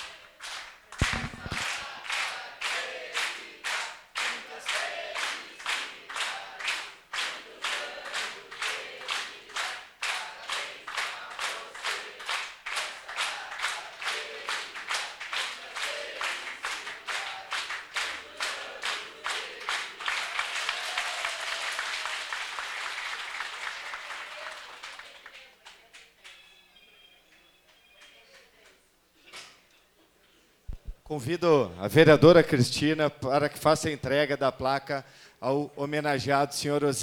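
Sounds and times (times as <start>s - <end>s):
crowd clapping rhythmically at a formal birthday ceremony: 0.0s - 26.4s
speech: 31.1s - 37.0s.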